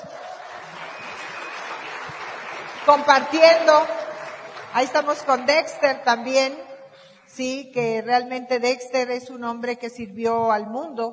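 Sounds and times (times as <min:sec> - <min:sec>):
audience applause: 0:00.0 - 0:05.9
speech: 0:02.9 - 0:04.0, 0:04.7 - 0:06.7, 0:07.3 - 0:11.1.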